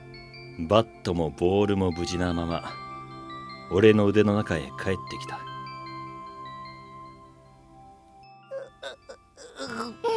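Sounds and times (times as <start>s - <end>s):
speech: 0.6s - 2.8s, 3.7s - 5.5s
adult man crying: 8.5s - 10.1s.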